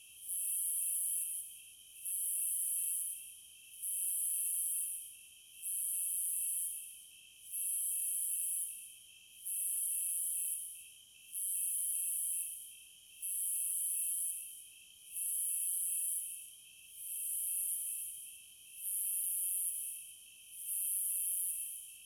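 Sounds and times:
cicadas: 0.2s - 22.0s.

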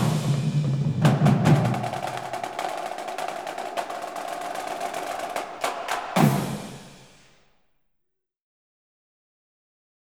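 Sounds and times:
marching band playing: 0.0s - 7.2s.

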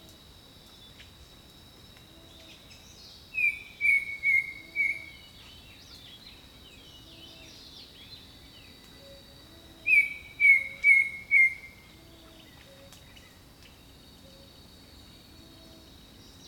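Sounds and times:
insect hum: 0.0s - 16.4s
bird whistled song: 2.4s - 6.3s, 9.8s - 13.4s.

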